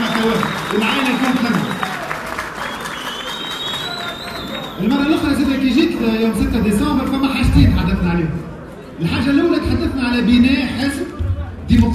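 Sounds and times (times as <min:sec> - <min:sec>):
audience at a political party gathering applauding: 0:00.0 - 0:05.1
speech: 0:00.2 - 0:01.7, 0:04.8 - 0:11.1.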